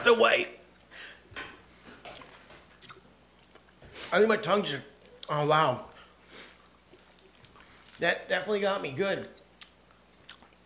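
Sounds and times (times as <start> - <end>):
speech: 0.0 - 0.6, 4.1 - 5.9, 8.0 - 9.4
wet chewing of a sour candy with crunchy bursts: 2.1 - 3.8, 6.5 - 8.1, 9.4 - 10.6.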